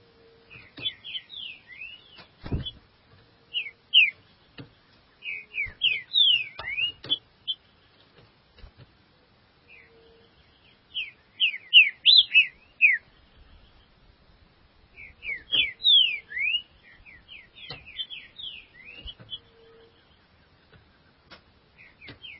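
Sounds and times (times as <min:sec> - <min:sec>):
Green-winged Saltator singing whistled notes: 0:03.5 - 0:04.2, 0:05.2 - 0:07.2, 0:11.0 - 0:13.1, 0:15.0 - 0:20.0.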